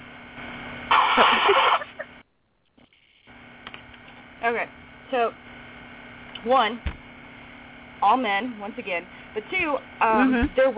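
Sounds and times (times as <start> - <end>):
person blowing nose: 0.9 - 1.9
speech: 4.4 - 5.5, 6.4 - 6.9, 8.0 - 10.7.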